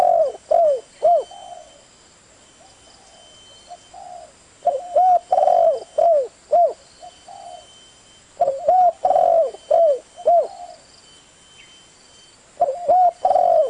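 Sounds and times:
Spotted Dove cooing: 0:00.0 - 0:01.8, 0:02.6 - 0:07.8, 0:08.4 - 0:10.9, 0:12.6 - 0:13.6.

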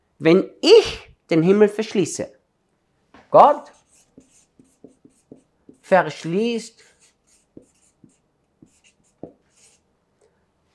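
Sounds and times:
speech: 0:00.2 - 0:02.4, 0:03.3 - 0:03.8, 0:05.9 - 0:06.9
handwriting with a pen: 0:03.8 - 0:05.9, 0:06.8 - 0:09.8.

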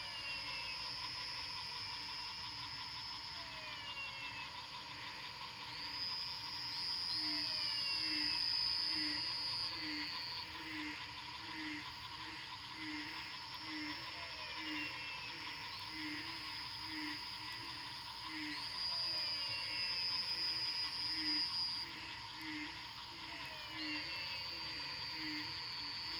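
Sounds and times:
frogs calling at night after rain in Fortín Arce, Luque, Paraguay: 0:00.0 - 0:26.1.

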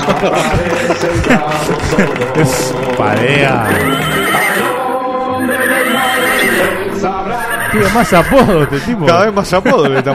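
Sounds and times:
laughter: 0:00.0 - 0:04.8, 0:05.5 - 0:10.1
speech: 0:00.2 - 0:04.7, 0:05.4 - 0:10.1
horse neighing: 0:03.6 - 0:08.8.

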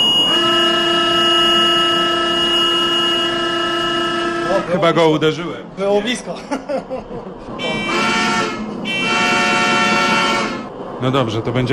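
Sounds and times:
train simulator warning signal horn: 0:00.0 - 0:04.8, 0:07.6 - 0:10.7
speech: 0:04.7 - 0:09.3, 0:11.0 - 0:11.7
laughter: 0:06.2 - 0:07.9.

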